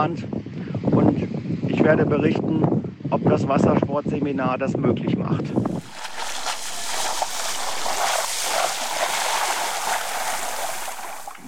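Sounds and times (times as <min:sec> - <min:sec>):
speech: 0:00.0 - 0:00.6, 0:01.2 - 0:05.8
wind on a beach: 0:00.0 - 0:11.4
waves on a beach: 0:05.5 - 0:11.4.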